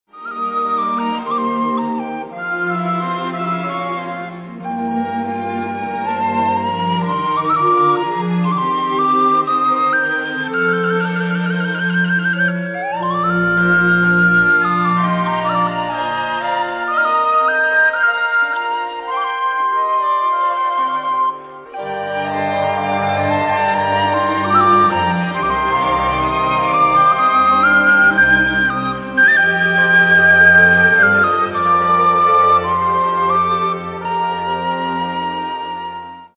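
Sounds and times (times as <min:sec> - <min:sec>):
sopilka flute: 0:00.1 - 0:36.3.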